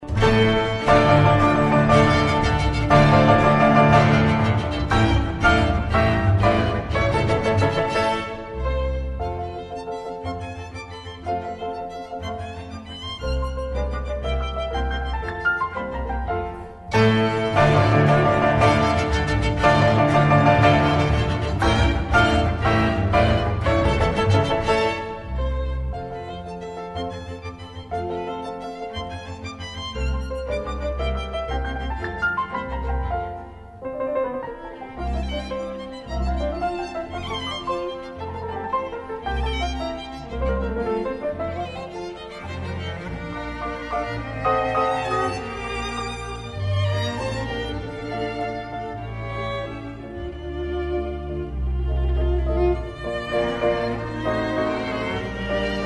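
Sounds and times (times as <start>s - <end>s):
piano quintet in A major: 0.0s - 55.8s.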